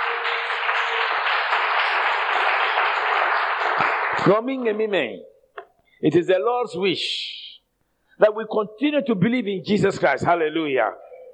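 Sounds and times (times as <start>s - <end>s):
audience clapping: 0.0s - 4.8s
speech: 4.2s - 5.3s, 6.0s - 7.4s, 8.2s - 11.0s.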